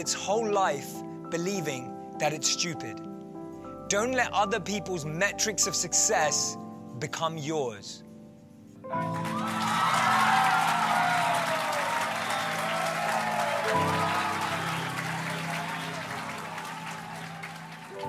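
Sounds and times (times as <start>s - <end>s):
speech: 0.0s - 3.1s, 3.9s - 8.0s, 8.9s - 9.3s
crowd clapping: 9.0s - 18.0s.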